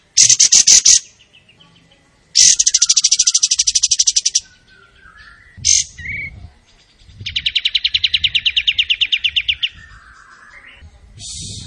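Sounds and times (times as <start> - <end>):
Tembakan bird singing vigorously: 0.0 - 11.6.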